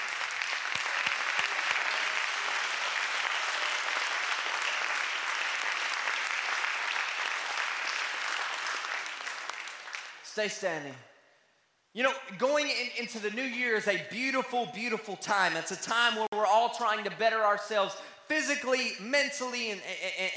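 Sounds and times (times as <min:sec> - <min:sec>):
audience clapping: 0:00.0 - 0:10.4
speech: 0:10.4 - 0:11.1, 0:12.0 - 0:20.3.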